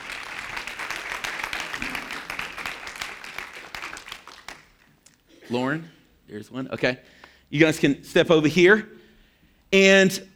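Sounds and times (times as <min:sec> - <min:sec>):
audience applause during a church service: 0:00.0 - 0:05.0
speech: 0:05.5 - 0:09.0, 0:09.7 - 0:10.3.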